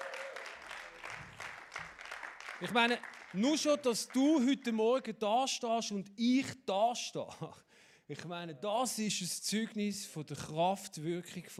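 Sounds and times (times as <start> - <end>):
audience applause welcoming a guest onto the stage at a church gathering: 0.0 - 4.2
speech: 2.6 - 11.5.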